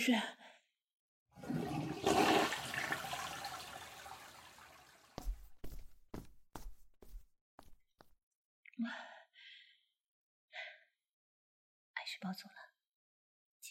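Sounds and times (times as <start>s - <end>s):
speech: 0.0s - 0.4s, 12.2s - 12.7s
toilet flushing: 1.4s - 5.3s
thumps or footsteps: 5.2s - 8.1s.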